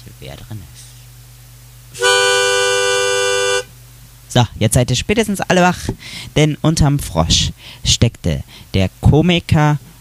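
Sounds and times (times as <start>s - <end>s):
speech: 0.2s - 1.0s, 4.3s - 9.9s
horn-like spoiler alarm tone: 2.0s - 3.7s.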